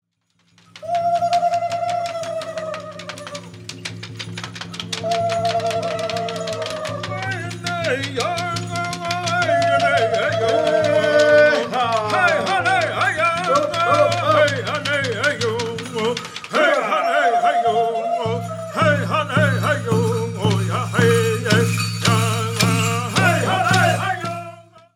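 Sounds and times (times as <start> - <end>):
Apache Crown Dance song: 0.4 - 24.7.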